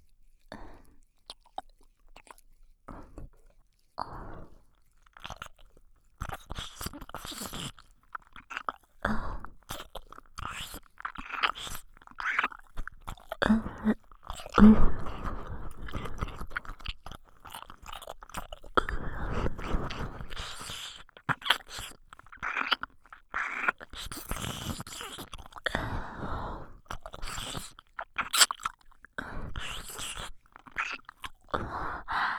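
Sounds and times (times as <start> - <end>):
Japanese ASMR roleplay ear licking with tongue pushed into the ear: 0.0 - 32.3.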